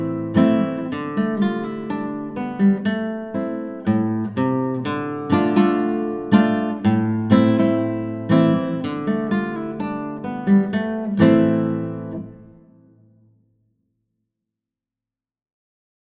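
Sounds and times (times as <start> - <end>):
Cuban style music piece: 0.0 - 12.5.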